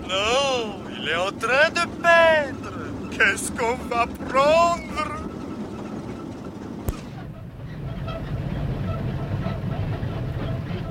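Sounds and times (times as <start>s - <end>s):
tank engine and tracks rumbling as it drives off: 0.0s - 10.8s
speech: 0.1s - 5.1s
sharp crack: 6.8s - 7.2s.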